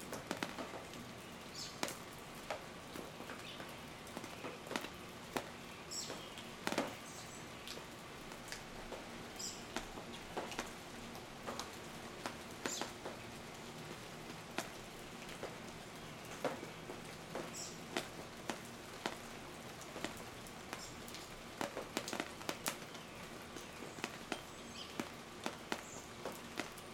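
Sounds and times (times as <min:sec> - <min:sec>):
rain dripping: 0:00.0 - 0:26.9
birds: 0:01.2 - 0:02.0, 0:02.9 - 0:07.8, 0:12.6 - 0:13.5, 0:15.9 - 0:17.9, 0:22.8 - 0:25.1.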